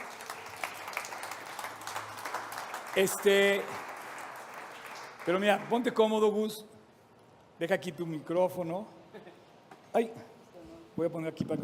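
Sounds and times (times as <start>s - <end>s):
group applauding: 0.0s - 6.1s
speech: 3.0s - 3.8s, 5.3s - 6.7s, 7.6s - 9.0s, 10.0s - 10.3s, 11.0s - 11.6s.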